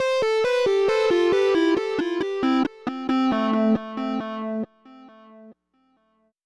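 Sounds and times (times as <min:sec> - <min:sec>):
indie rock keyboard: 0:00.0 - 0:04.7.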